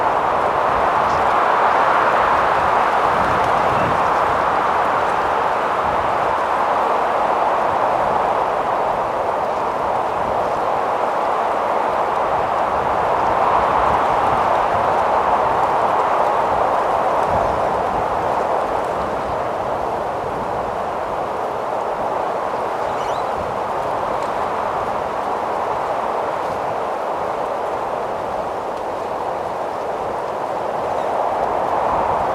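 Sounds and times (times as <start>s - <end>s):
very strong wind in tree in Mojave Desert California USA: 0.0s - 32.3s.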